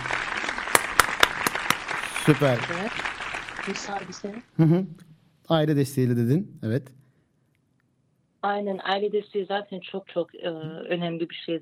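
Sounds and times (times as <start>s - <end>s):
applause: 0.0s - 4.5s
speech: 2.3s - 7.0s, 8.4s - 11.6s.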